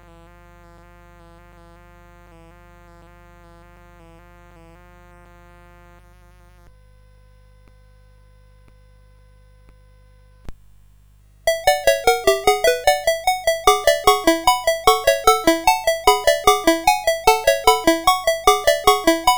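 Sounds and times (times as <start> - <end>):
music box on CSG8580R5 sound chip: 11.5 - 19.3.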